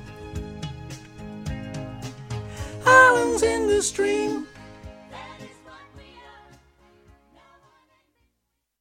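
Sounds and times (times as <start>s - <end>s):
high women's choir singing harmonies: 2.9s - 8.2s.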